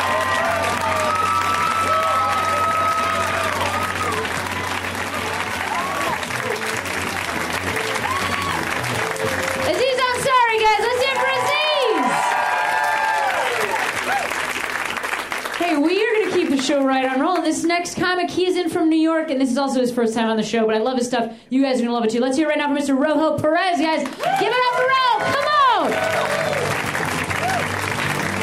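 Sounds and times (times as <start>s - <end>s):
cheering and scattered shouted voices: 0.0s - 14.4s, 24.2s - 28.4s
comedy show audience clapping for a comedian: 0.0s - 17.6s, 24.0s - 28.4s
speech: 17.8s - 25.4s.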